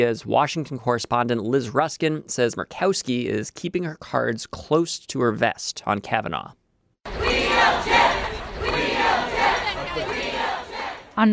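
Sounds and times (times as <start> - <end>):
speech: 0.0 - 6.6, 11.2 - 11.3
protest crowd chanting in unison: 7.1 - 11.3.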